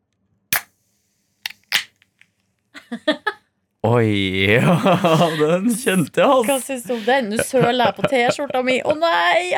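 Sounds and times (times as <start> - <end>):
ice-cold soda can popping open: 0.5 - 0.8, 1.4 - 2.3
laughter: 2.8 - 9.5
speech: 2.9 - 9.5.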